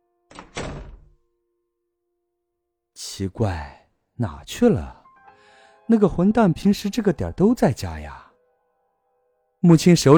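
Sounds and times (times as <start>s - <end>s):
door closing with thuds: 0.3s - 1.2s
speech: 3.2s - 5.0s, 5.9s - 8.2s, 9.6s - 10.1s.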